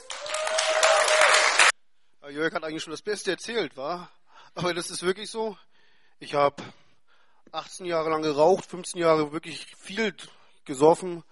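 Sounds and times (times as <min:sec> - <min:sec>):
audience applause: 0:00.0 - 0:01.7
speech: 0:02.3 - 0:06.8, 0:07.5 - 0:11.3.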